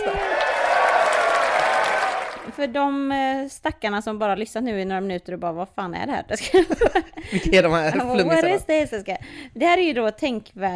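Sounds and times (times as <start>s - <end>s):
children cheering: 0.0s - 2.5s
speech: 2.6s - 10.7s.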